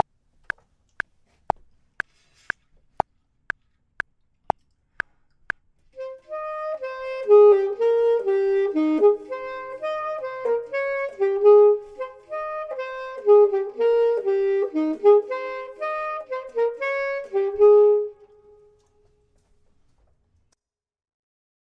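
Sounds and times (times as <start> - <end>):
saxophone: 6.0 - 19.2
clarinet: 6.0 - 19.4.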